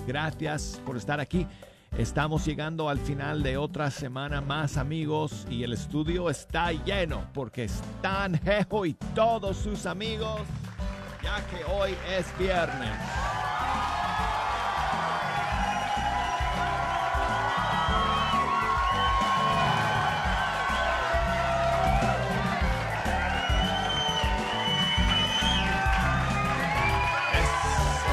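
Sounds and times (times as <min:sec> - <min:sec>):
speech: 0:00.0 - 0:10.6, 0:11.2 - 0:13.3
studio audience bursting into applause: 0:09.5 - 0:28.1.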